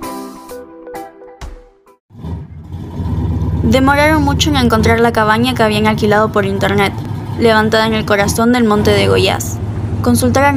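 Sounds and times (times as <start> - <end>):
car driving along a road: 2.1 - 10.5
speech: 3.6 - 10.5.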